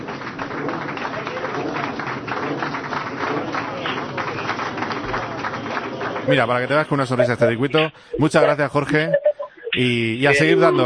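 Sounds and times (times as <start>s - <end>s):
live audience applause: 0.0s - 7.6s
speech: 6.3s - 9.2s, 9.8s - 10.8s.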